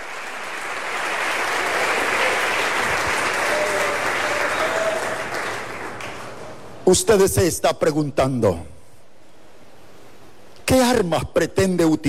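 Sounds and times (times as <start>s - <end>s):
audience applause: 0.0s - 6.5s
speech: 6.9s - 8.8s, 10.9s - 12.0s.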